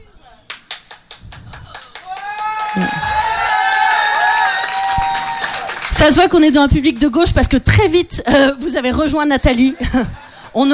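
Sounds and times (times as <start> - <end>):
audience applause: 0.6 - 7.2
audience cheering voices: 1.7 - 6.6
speech: 2.8 - 3.1, 6.0 - 10.7.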